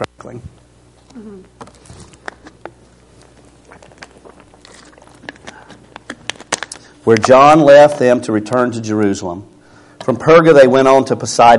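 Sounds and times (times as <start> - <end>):
person drinking water: 1.5 - 7.0
speech: 7.1 - 9.5, 10.1 - 11.5.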